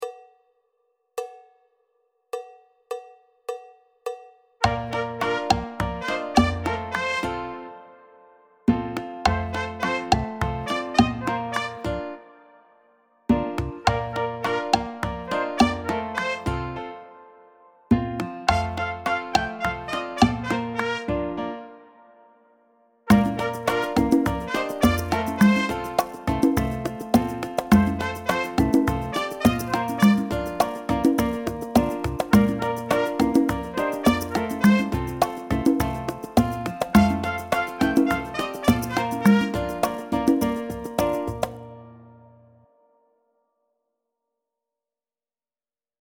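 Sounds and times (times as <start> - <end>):
cha cha cha solo: 4.6 - 7.6, 8.7 - 12.1, 13.3 - 16.8, 17.9 - 21.5, 23.1 - 41.7.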